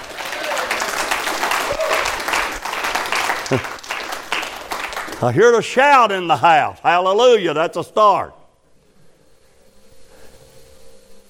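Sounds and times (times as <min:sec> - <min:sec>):
audience applauding: 0:00.0 - 0:06.7
speech: 0:03.5 - 0:03.8, 0:05.2 - 0:08.4.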